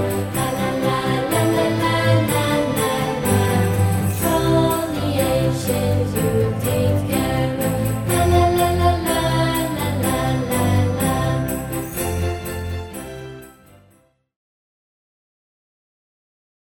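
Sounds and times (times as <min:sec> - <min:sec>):
contralto voices: 0:00.0 - 0:13.3.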